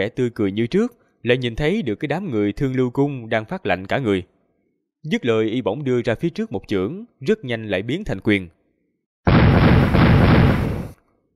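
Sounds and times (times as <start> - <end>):
speech: 0.0 - 4.3, 5.0 - 8.6
magic command tokens shattering into fine powder in a fantasy battle: 9.3 - 11.0.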